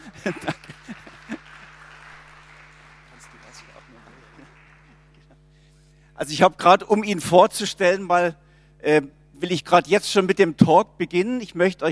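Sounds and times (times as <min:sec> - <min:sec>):
audience applause: 0:00.0 - 0:05.2
laughter: 0:00.0 - 0:05.5
speech: 0:00.2 - 0:00.6, 0:06.2 - 0:11.9.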